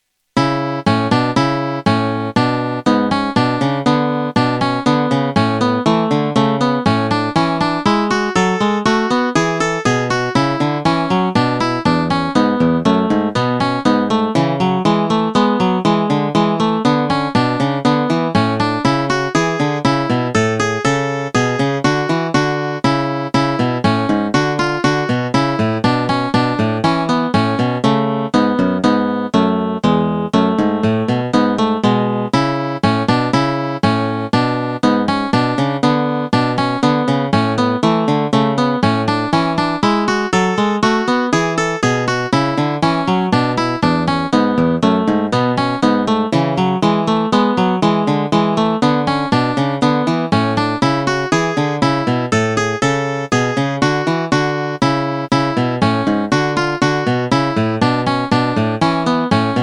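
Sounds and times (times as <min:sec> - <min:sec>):
duet in A major: 0:00.3 - 0:59.6.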